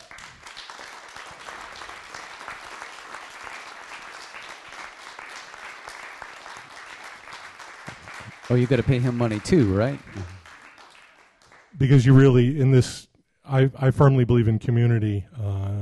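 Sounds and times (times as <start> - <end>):
round of applause: 0.0 - 12.3
speech: 8.5 - 10.4, 11.8 - 15.4.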